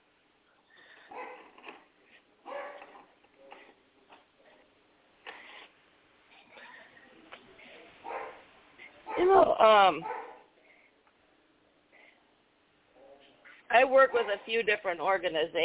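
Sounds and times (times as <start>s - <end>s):
small dogs barking: 1.0s - 1.6s, 2.4s - 3.1s, 8.0s - 8.4s, 9.1s - 9.4s, 10.0s - 10.5s
speech: 9.2s - 10.2s, 13.9s - 15.6s.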